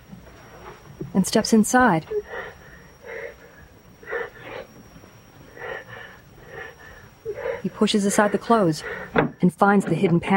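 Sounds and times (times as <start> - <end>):
speech: 1.2 - 2.2, 7.8 - 10.3
whimpering from inside a closet: 2.1 - 4.8, 5.5 - 9.1.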